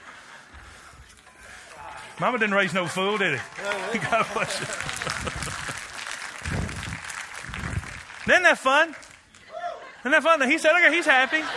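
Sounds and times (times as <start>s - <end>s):
laughter: 0.0s - 7.0s, 9.4s - 11.5s
audience clapping: 2.0s - 9.6s
speech: 2.2s - 5.5s, 8.3s - 9.1s, 10.0s - 11.5s.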